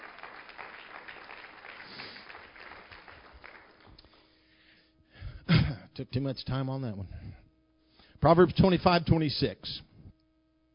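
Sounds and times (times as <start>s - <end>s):
audience clapping: 0.0s - 4.3s
speech: 6.0s - 7.2s, 8.2s - 9.9s.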